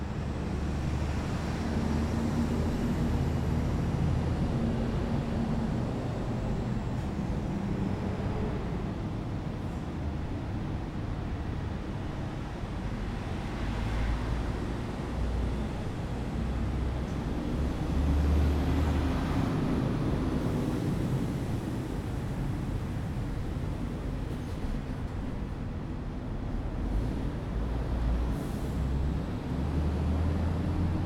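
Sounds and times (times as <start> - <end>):
small city main street ambience: 0.0 - 31.0.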